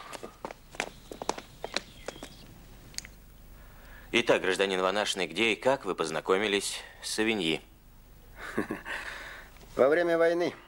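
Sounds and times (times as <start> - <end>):
footsteps of someone walking: 0.0 - 3.0
speech: 4.1 - 7.7, 8.6 - 9.1, 9.8 - 10.6.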